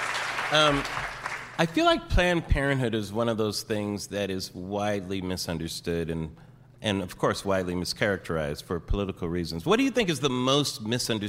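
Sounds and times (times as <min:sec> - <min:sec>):
live audience applause: 0:00.0 - 0:01.7
speech: 0:00.5 - 0:11.2.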